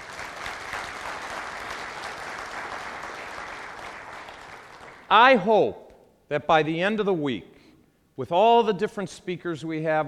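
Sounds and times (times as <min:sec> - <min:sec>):
audience applause welcoming first-time attendees at a gathering: 0:00.0 - 0:05.1
speech: 0:05.1 - 0:07.5, 0:08.2 - 0:10.0.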